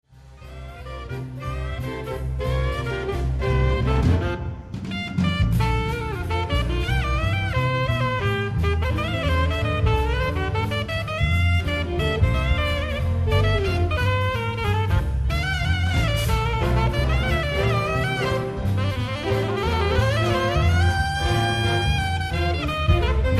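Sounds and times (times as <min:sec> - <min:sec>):
saxophone solo: 0:00.4 - 0:23.3.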